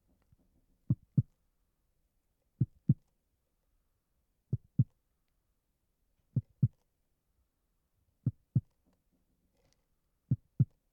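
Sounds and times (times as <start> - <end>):
heartbeat: 0.9 - 1.3, 2.6 - 3.0, 4.5 - 5.0, 6.4 - 6.8, 8.2 - 8.7, 10.3 - 10.8.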